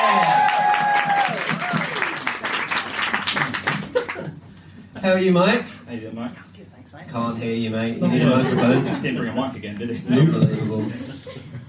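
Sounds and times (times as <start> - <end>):
audience applause welcoming a guest onto a stage: 0.0 - 4.3
speech: 5.0 - 11.6
laughter: 8.0 - 9.4, 10.1 - 11.6.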